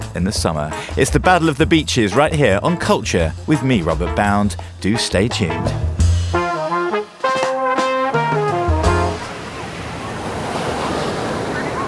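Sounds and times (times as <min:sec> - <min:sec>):
speech: 0:00.2 - 0:05.9
plucked musical notes: 0:03.6 - 0:09.4
waves and surf breaking at Copacabana Beach in Brazil: 0:07.2 - 0:11.8
wind: 0:09.1 - 0:11.8.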